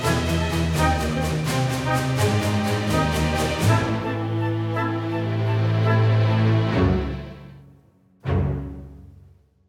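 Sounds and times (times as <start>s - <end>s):
percussion: 0.0s - 6.3s
woodwinds: 0.0s - 9.0s
strings: 0.0s - 9.2s
brass: 0.0s - 9.3s.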